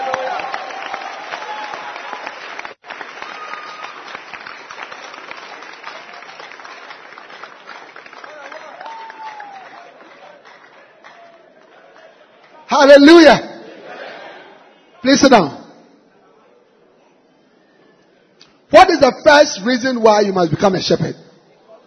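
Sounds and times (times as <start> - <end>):
audience clapping hands: 0.0 - 13.0
speech: 12.7 - 13.5, 15.0 - 15.6, 18.7 - 21.2.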